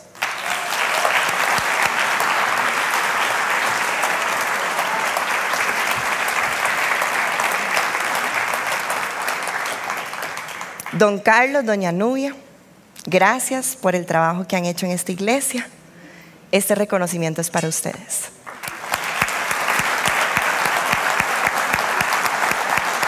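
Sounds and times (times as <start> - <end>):
applause: 0.0 - 11.0, 18.4 - 23.0
speech: 11.0 - 12.4, 13.0 - 15.8, 16.5 - 18.2.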